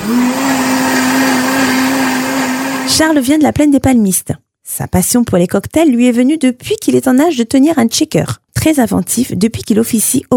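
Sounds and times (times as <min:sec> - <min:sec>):
electric blender mixing chouchou juice with sugar for homemade syrup: 0:00.0 - 0:03.1
speech: 0:03.0 - 0:10.3.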